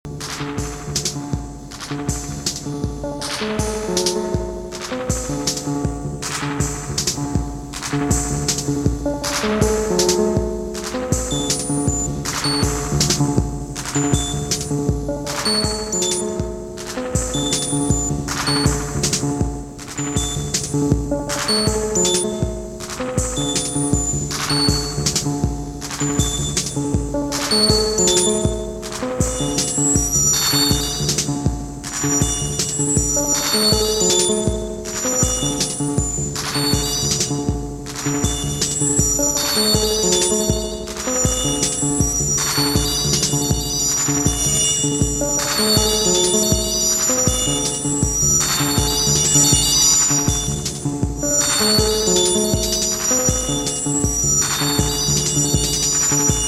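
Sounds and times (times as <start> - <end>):
instrumental music: 0.1 - 56.4.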